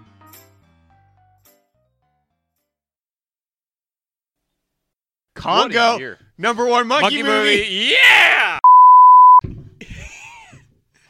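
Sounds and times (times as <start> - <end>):
speech: 5.4 - 8.6
censor bleep over a word: 8.6 - 9.4.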